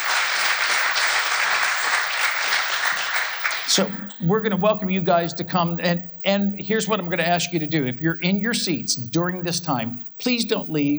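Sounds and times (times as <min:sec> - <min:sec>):
applause: 0:00.0 - 0:04.2
speech: 0:03.7 - 0:10.9.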